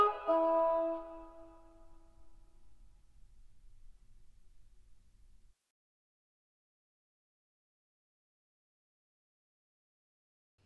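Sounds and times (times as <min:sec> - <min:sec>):
oboe playing a gigue: 0:00.0 - 0:02.1.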